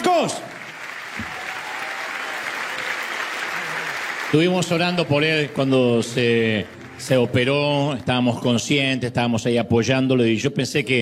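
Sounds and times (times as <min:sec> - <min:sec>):
audience applause: 0:00.0 - 0:08.2
speech: 0:00.2 - 0:00.6, 0:04.3 - 0:11.0.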